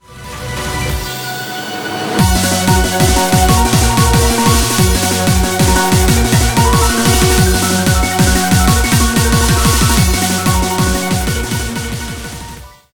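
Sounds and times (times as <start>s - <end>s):
background music: 0.0s - 12.9s.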